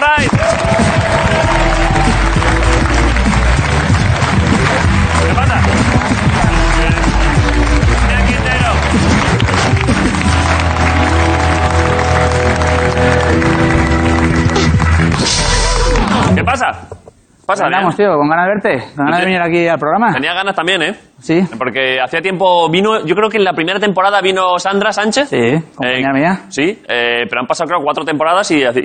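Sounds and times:
applause: 0.0 - 16.3
speech: 17.6 - 28.8.

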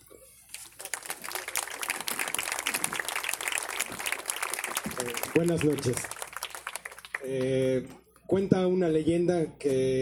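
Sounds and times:
audience applause: 0.6 - 7.6
speech: 5.3 - 6.2, 7.2 - 10.0.

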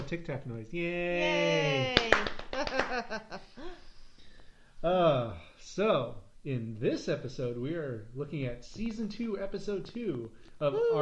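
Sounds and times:
speech: 0.1 - 3.9, 4.8 - 11.0
hands clapping: 1.7 - 3.2.

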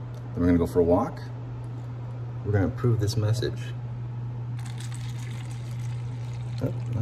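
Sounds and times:
low electrical hum: 0.0 - 7.0
speech: 0.4 - 1.3, 2.4 - 3.8, 6.6 - 7.0
coffee pouring into a cup: 4.6 - 7.0.

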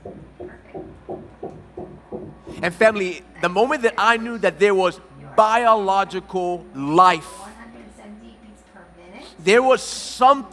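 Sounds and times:
fetal heartbeat on an ultrasound monitor: 0.0 - 3.8
low hum: 0.0 - 6.8
speech: 2.6 - 7.4, 9.4 - 10.5.

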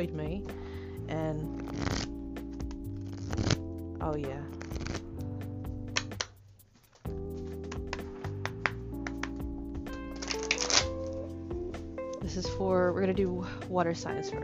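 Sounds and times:
speech: 0.0 - 2.2, 4.0 - 4.9, 12.3 - 14.4
cards being pulled out and shuffled: 1.4 - 3.7, 4.3 - 11.3.

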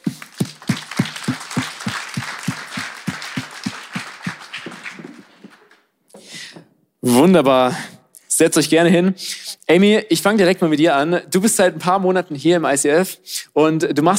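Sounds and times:
audience applause: 0.0 - 5.8
speech: 7.1 - 14.1.

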